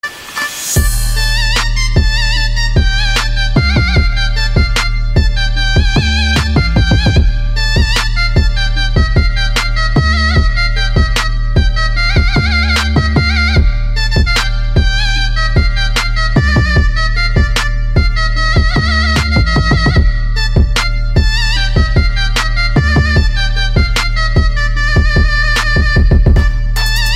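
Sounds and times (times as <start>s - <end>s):
zurna playing: 0.4s - 27.1s.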